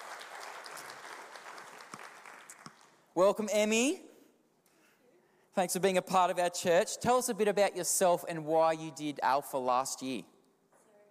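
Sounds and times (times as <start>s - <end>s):
church congregation clapping to welcome a woman onto the stage: 0.0s - 3.1s
speech: 3.2s - 4.1s, 5.6s - 10.3s.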